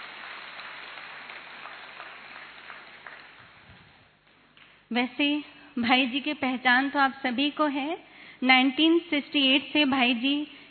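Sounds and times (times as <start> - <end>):
crowd at a gathering clapping to welcome a guest speaker: 0.0 - 3.7
speech: 4.9 - 10.6.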